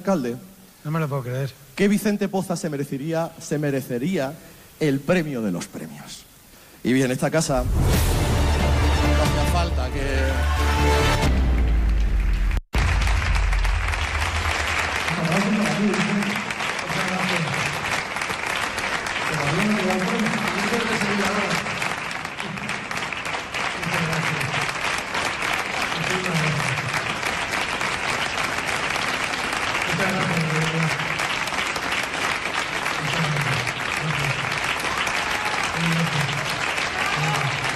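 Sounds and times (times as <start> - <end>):
speech: 0.0 - 8.2, 9.2 - 11.2
audience applause: 8.6 - 37.7.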